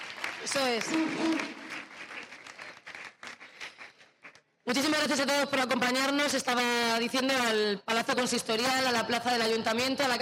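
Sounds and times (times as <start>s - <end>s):
audience applause: 0.0s - 4.4s
speech: 0.4s - 1.6s, 4.7s - 10.2s.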